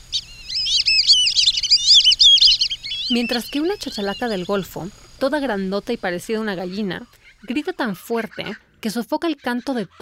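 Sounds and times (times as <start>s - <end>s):
black-bellied whistling ducks whistling: 0.0s - 4.8s, 6.6s - 8.7s
speech: 3.1s - 10.0s.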